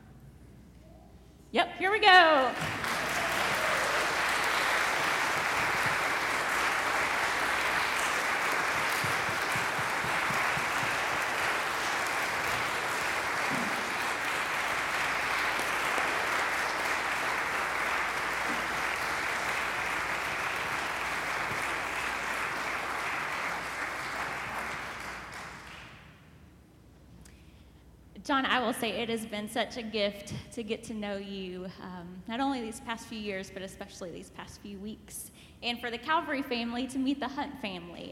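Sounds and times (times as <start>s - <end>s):
speech: 1.5s - 2.7s, 28.3s - 38.0s
audience applause: 2.6s - 26.0s.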